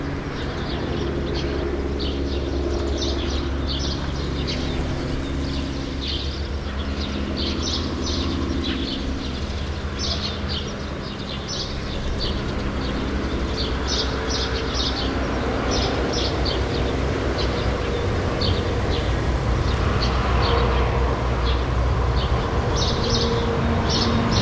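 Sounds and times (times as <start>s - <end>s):
true sparrows: 0.0s - 24.4s.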